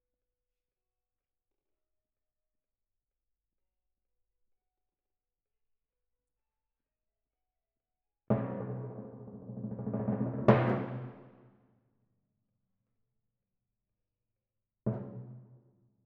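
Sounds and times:
timpani in F: 8.3 - 11.5.

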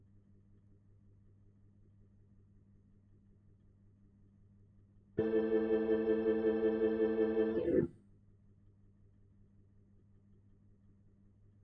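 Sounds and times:
Hammond organ: 5.2 - 7.9.

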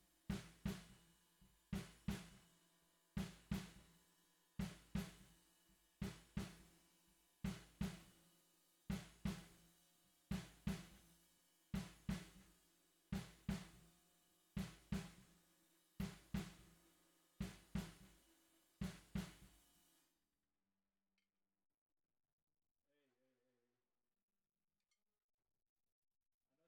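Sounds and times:
bottom snare drum: 0.0 - 1.1, 1.7 - 2.5, 3.2 - 4.0, 4.6 - 5.4, 6.0 - 6.8, 7.5 - 8.2, 8.9 - 9.7, 10.3 - 11.1, 11.8 - 12.5, 13.2 - 13.9, 14.6 - 15.3, 16.0 - 16.8, 17.4 - 18.2, 18.8 - 19.7.

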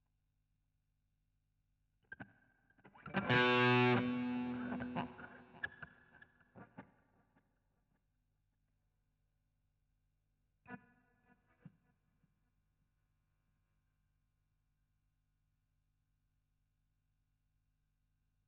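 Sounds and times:
guitar solo: 3.0 - 5.5.

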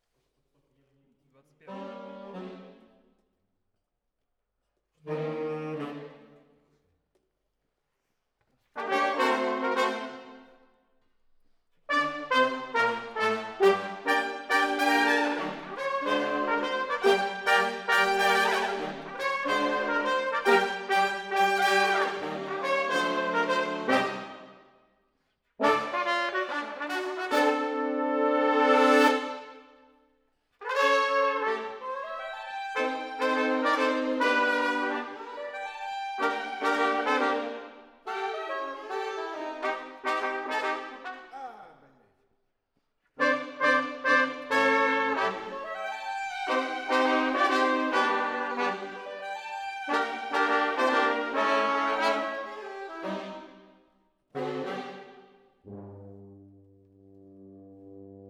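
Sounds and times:
horns playing: 1.6 - 3.0, 8.8 - 10.6, 11.9 - 24.6, 25.6 - 29.8, 30.6 - 41.7, 43.2 - 53.6, 54.3 - 56.5.

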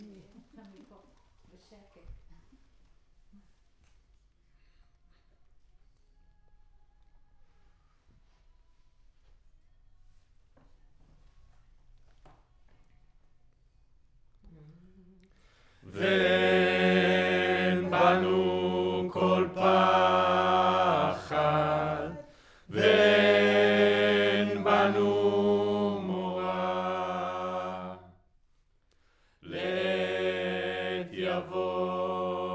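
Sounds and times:
choir singing: 15.8 - 28.2, 29.4 - 32.5.

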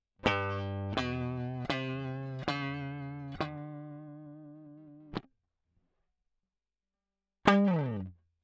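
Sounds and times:
guitar solo line: 0.2 - 5.2, 7.5 - 8.1.

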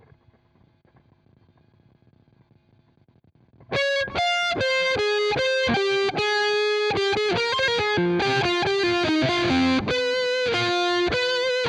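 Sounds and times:
guitar: 3.5 - 11.6.

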